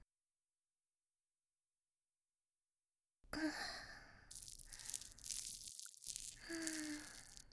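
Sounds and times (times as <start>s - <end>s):
ear cleaning on the right side: 4.3s - 7.5s.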